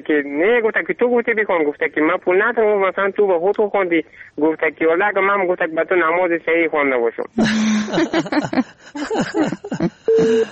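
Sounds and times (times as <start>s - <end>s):
speech: 0.0s - 10.5s
laughter: 7.4s - 10.5s
busy tone after a dropped phone call: 10.1s - 10.5s.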